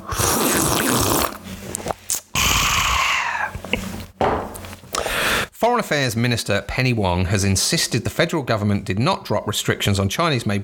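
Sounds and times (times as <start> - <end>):
slurping a hot drink: 0.0 - 4.1
speech: 5.6 - 10.6.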